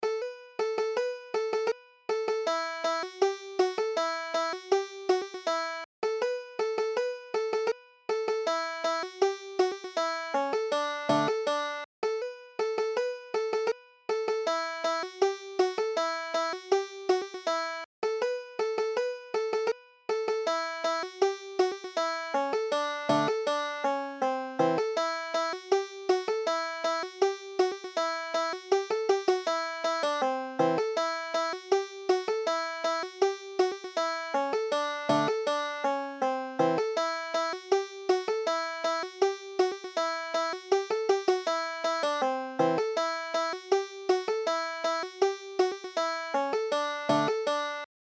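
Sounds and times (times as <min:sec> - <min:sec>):
banjo: 0:00.0 - 0:47.9.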